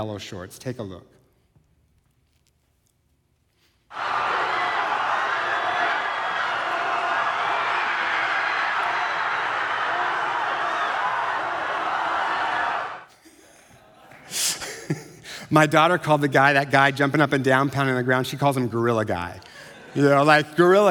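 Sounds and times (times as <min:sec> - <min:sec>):
speech: 0:00.0 - 0:01.2, 0:15.5 - 0:20.8
high school classmates cheering: 0:03.9 - 0:13.1.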